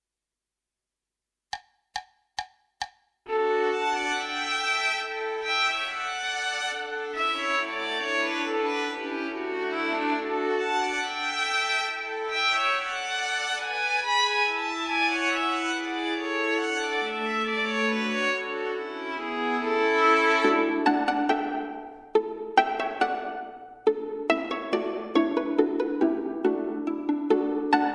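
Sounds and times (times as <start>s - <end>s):
gavotte: 3.3s - 27.9s.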